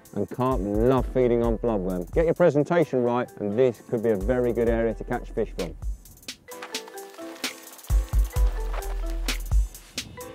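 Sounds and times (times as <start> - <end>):
speech: 0.1 - 5.9
legs wading knee-deep through soft claggy silt at the bottom of a pond: 6.5 - 9.8.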